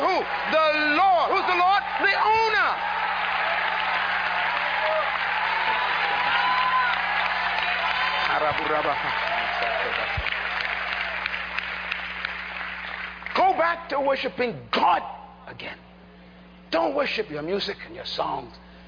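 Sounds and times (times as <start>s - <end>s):
audience clapping hands: 0.0s - 13.5s
speech: 8.5s - 10.4s, 13.8s - 15.9s, 16.7s - 18.7s.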